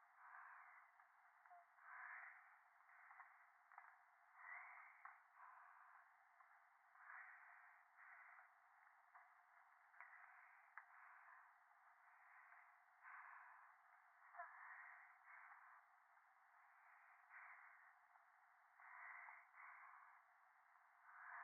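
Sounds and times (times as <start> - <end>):
breathing close against the right ear on the phone in the mountains: 0.2 - 1.0, 1.8 - 8.6, 10.0 - 15.8, 16.8 - 18.2, 18.8 - 21.4.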